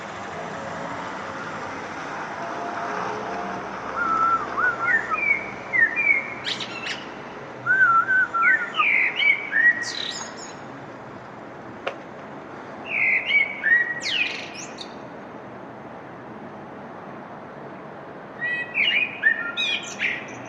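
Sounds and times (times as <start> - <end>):
outdoor hiss: 0.0 - 20.4
birds chirping, recorded on a balcony: 4.0 - 10.8, 12.8 - 15.0, 18.4 - 20.4.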